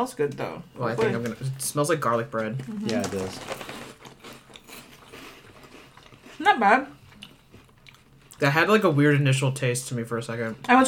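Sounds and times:
speech: 0:00.0 - 0:03.7, 0:06.4 - 0:07.0, 0:08.4 - 0:10.8
chewing: 0:02.5 - 0:08.4
person biting into a crunchy butter ball corn puff snack: 0:02.9 - 0:06.4.

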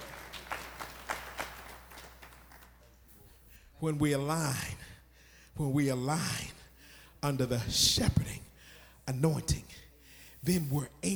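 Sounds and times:
audience clapping: 0:00.0 - 0:02.8
speech: 0:03.8 - 0:04.9, 0:05.6 - 0:06.6, 0:07.2 - 0:08.4, 0:09.1 - 0:09.8, 0:10.4 - 0:11.1.

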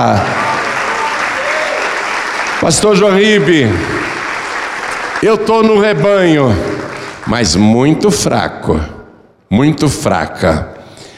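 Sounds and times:
speech: 0:00.0 - 0:00.4, 0:02.6 - 0:04.0, 0:05.2 - 0:10.7
audience applauding in church: 0:00.0 - 0:08.0.

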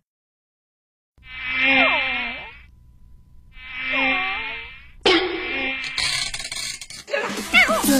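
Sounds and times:
mosquito buzzing: 0:01.2 - 0:02.7, 0:03.5 - 0:07.8.

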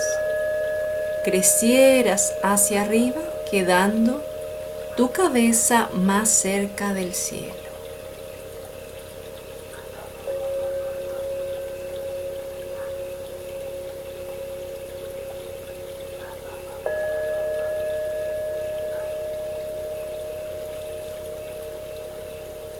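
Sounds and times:
flowing water: 0:00.0 - 0:22.7
sustained hum: 0:00.0 - 0:22.7
speech: 0:01.2 - 0:04.3, 0:05.0 - 0:07.7.

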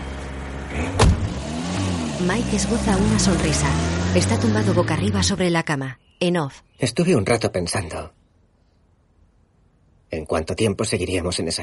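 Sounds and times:
small car engine humming: 0:00.0 - 0:05.4
speech: 0:02.2 - 0:08.2, 0:10.1 - 0:11.6.

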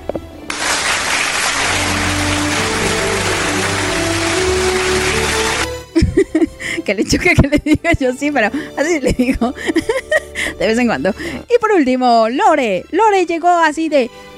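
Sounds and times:
crowd applause: 0:00.5 - 0:05.8
laughter: 0:01.7 - 0:08.0, 0:08.8 - 0:10.4
speech: 0:06.9 - 0:10.0, 0:10.6 - 0:14.2.

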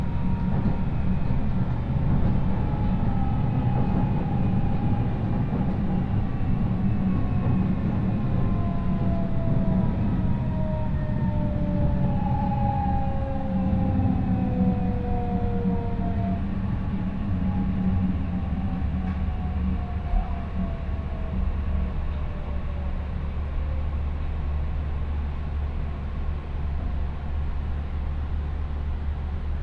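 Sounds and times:
Chūō West Line train heavy low rumble: 0:00.0 - 0:29.6.

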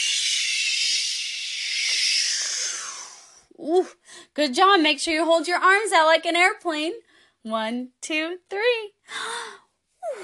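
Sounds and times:
breath blown out in a whoosh: 0:01.0 - 0:03.4
speech: 0:03.6 - 0:09.4.

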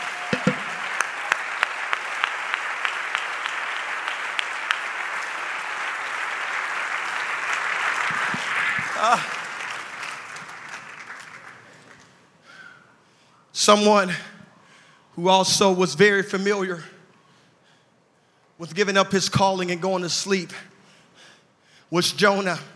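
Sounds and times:
audience clapping hands: 0:00.0 - 0:12.3
speech: 0:09.1 - 0:09.3, 0:13.7 - 0:14.3, 0:15.2 - 0:16.9, 0:18.6 - 0:20.7, 0:21.9 - 0:22.7.

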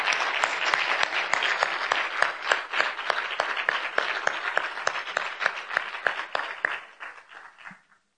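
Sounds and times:
crowd applause: 0:00.0 - 0:08.0.

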